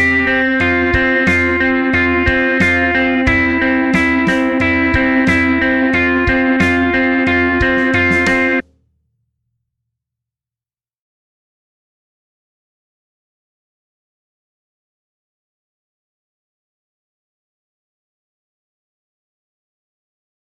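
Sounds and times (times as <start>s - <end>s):
guitar backing: 0.0s - 8.6s.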